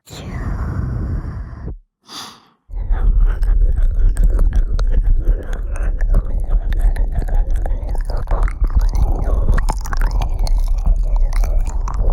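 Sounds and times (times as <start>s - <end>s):
soft breathy sigh: 2.0s - 2.6s
moist chewing, nibbling and clicking mouth sounds: 2.7s - 12.1s.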